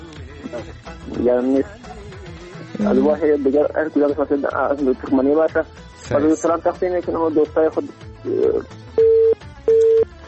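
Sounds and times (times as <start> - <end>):
speech: 0.5 - 1.9, 2.8 - 8.8
telephone busy tone after a call is cut off: 9.0 - 10.1.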